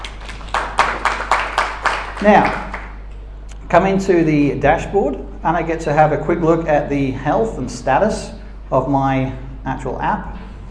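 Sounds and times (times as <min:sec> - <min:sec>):
hand claps: 0:00.0 - 0:03.1
speech: 0:02.2 - 0:02.7, 0:03.7 - 0:10.4.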